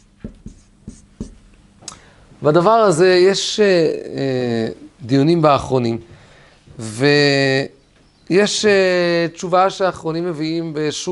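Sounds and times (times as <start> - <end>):
pen strokes writing by hand: 0.0 - 1.4
speech: 2.4 - 6.1, 6.8 - 11.0.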